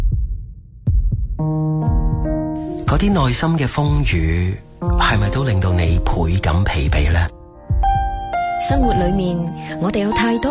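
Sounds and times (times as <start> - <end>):
deep heartbeat: 0.0 - 2.4, 6.9 - 9.4
speech: 2.9 - 7.4, 8.6 - 10.4.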